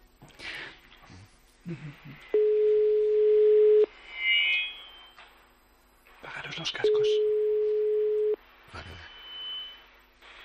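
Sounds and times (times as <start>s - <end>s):
speech: 1.7s - 2.4s, 6.6s - 7.4s
phone ringback tone: 2.4s - 3.9s, 6.9s - 8.4s.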